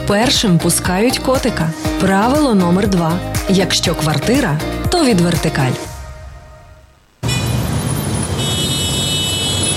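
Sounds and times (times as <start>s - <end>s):
speech: 0.1s - 5.9s
dense city traffic: 5.9s - 9.7s
car horns blaring: 7.2s - 9.7s.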